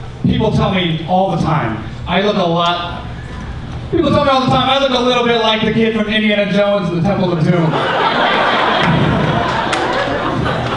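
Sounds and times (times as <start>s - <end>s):
speech: 0.4s - 3.1s, 3.9s - 8.6s
laughter: 7.6s - 10.7s
comedy show audience applauding and cheering during a stand-up set: 8.3s - 10.7s.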